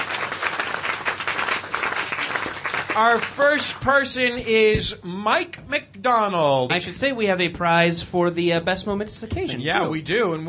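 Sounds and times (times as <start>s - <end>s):
audience applause: 0.0s - 4.0s
speech: 3.0s - 10.4s.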